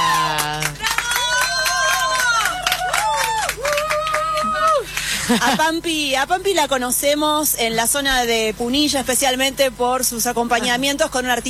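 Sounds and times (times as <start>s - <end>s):
audience applause: 0.0s - 5.7s
speech: 5.3s - 11.4s.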